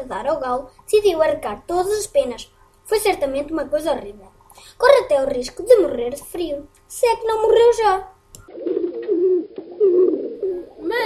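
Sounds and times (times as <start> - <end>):
speech: 0.0 - 8.8
pigeons cooing: 8.5 - 11.0.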